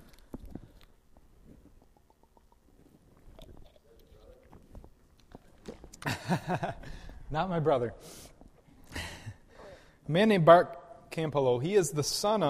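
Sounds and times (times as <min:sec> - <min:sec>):
speaker drinking water: 0:00.0 - 0:06.1
speech: 0:06.3 - 0:08.3, 0:10.1 - 0:12.4.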